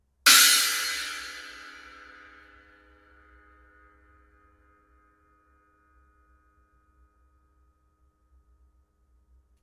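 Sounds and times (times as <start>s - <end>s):
Zildjian cymbal: 0.3s - 5.1s.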